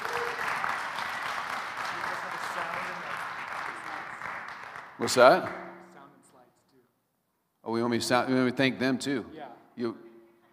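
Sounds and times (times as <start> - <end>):
audience applause: 0.0 - 5.3
speech: 5.0 - 5.6, 7.7 - 10.0.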